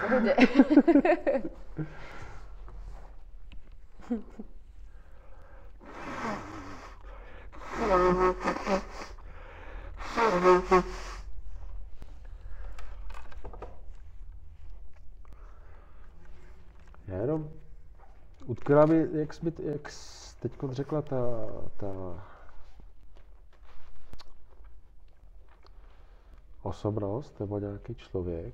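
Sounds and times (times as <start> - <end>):
laughter: 0.0 - 2.2
speech: 0.1 - 2.2, 4.1 - 4.5, 7.8 - 9.1, 10.2 - 11.1, 17.1 - 17.6, 18.4 - 22.3, 26.6 - 28.5
nose blowing: 5.8 - 11.6.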